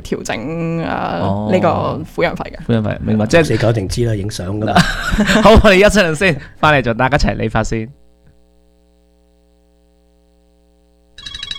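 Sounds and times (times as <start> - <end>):
quiet hum: 0.0 - 11.5
speech: 0.1 - 8.0
laughter: 0.4 - 6.5
bright electronic phone ringtone: 11.2 - 11.5.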